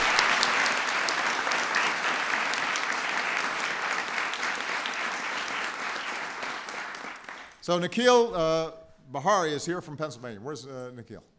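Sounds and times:
audience applause: 0.0s - 7.6s
speech: 7.7s - 11.3s.

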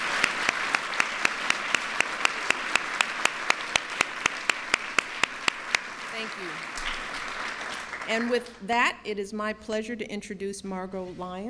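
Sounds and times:
audience applause: 0.0s - 8.6s
speech: 8.1s - 11.4s.

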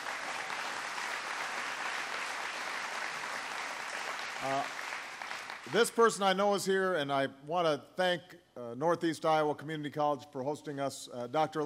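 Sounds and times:
crowd applause: 0.0s - 5.8s
speech: 4.4s - 4.8s, 5.7s - 11.6s.

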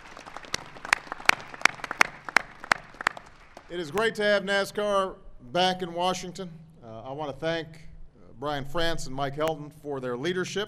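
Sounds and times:
audience applause: 0.0s - 4.0s
speech: 3.7s - 10.6s.

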